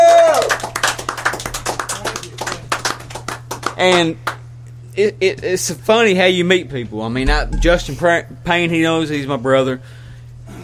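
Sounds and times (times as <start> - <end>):
audience applause: 0.0 - 3.8
speech: 3.8 - 4.3, 5.0 - 10.0.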